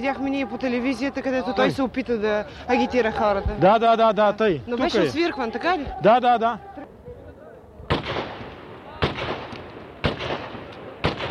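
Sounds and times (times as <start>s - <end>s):
speech: 0.0s - 6.7s
gunshots: 7.9s - 11.2s.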